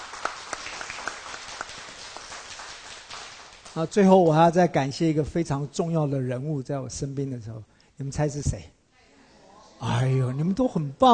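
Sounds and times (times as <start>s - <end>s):
audience applause: 0.0s - 3.8s
speech: 3.8s - 8.8s, 9.8s - 11.1s.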